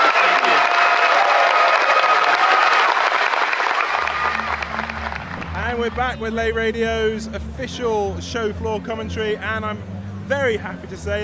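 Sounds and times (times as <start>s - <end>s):
cheering: 0.0s - 5.6s
round of applause: 0.0s - 6.0s
speech: 6.0s - 11.2s.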